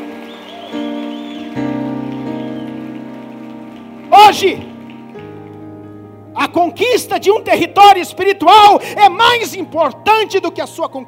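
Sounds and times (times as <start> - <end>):
audience applause: 0.0 - 5.6
speech: 4.3 - 4.7, 6.4 - 11.0.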